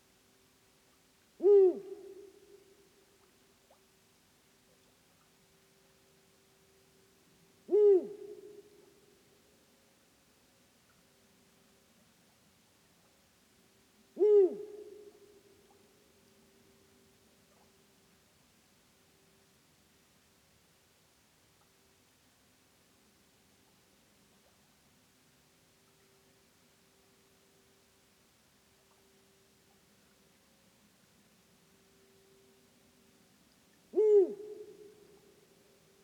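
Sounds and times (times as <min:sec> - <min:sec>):
Bubo bubo eagle owl: 0:01.4 - 0:02.7, 0:07.7 - 0:08.8, 0:14.2 - 0:15.3, 0:33.9 - 0:35.4.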